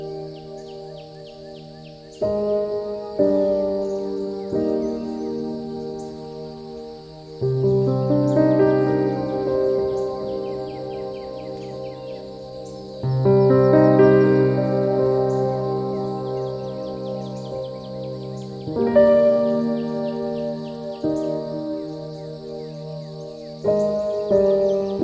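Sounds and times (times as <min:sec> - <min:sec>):
birds chirping in high twittering notes: 0:00.0 - 0:25.0.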